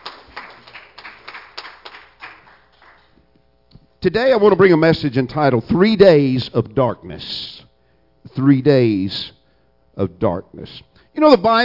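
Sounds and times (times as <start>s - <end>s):
audience hand clapping: 0.0s - 3.2s
speech: 4.0s - 7.6s, 8.3s - 9.4s, 10.0s - 11.6s.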